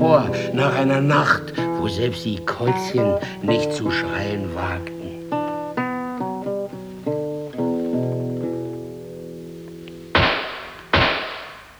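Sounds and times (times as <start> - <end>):
speech: 0.0 - 5.0
laughter: 0.0 - 5.6
soft sustained music: 0.0 - 11.7
pistol shots: 10.2 - 11.7.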